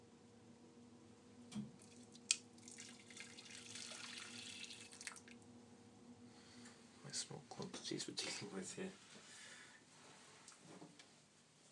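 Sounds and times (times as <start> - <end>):
speech: 1.5 - 1.8, 7.2 - 9.2
water pouring into a pan: 1.8 - 5.4.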